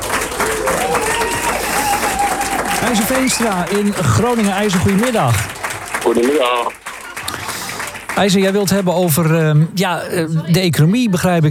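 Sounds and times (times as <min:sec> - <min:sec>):
crowd applause: 0:00.0 - 0:09.7
faint tonal whistles or cheers: 0:00.5 - 0:03.9
speech: 0:02.9 - 0:06.8, 0:08.2 - 0:11.4.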